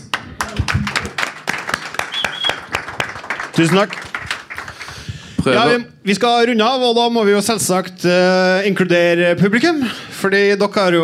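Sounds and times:
audience applause: 0:00.0 - 0:05.1
speech: 0:03.6 - 0:04.1, 0:05.4 - 0:11.0.

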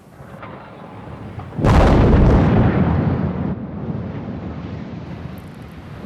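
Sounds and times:
150-metre tower collapsing: 0:01.4 - 0:03.6
bang: 0:01.4 - 0:03.7.

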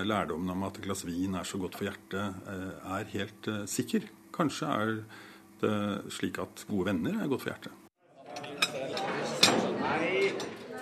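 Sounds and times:
speech: 0:00.0 - 0:07.8
murmur of many voices chatting: 0:08.0 - 0:10.8
dishes and cutlery clattering in a school dining hall: 0:08.3 - 0:10.8.

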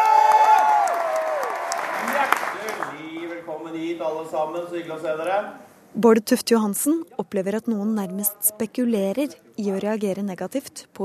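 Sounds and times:
studio audience applause: 0:00.0 - 0:03.5
speech: 0:04.0 - 0:11.0.

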